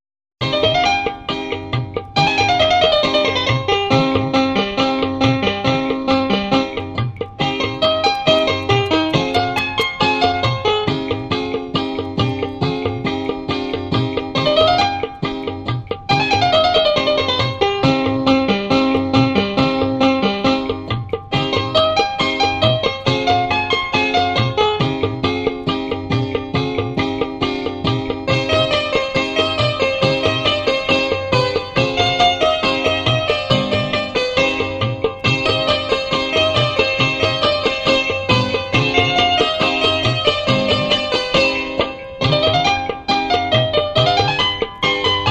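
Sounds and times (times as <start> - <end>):
instrumental music: 0.4 - 45.2.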